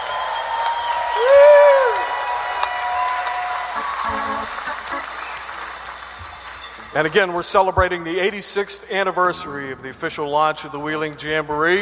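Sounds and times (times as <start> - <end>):
loud whistle-like whoop: 0.0 - 4.5
audience cheering: 0.0 - 7.4
large live theater audience applauding: 0.0 - 7.4
speech: 6.9 - 11.8.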